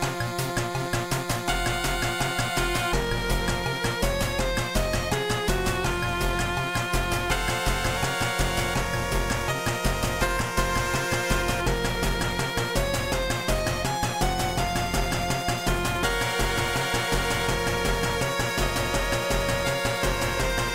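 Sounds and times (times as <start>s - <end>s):
8-bit music: 0.0s - 20.7s.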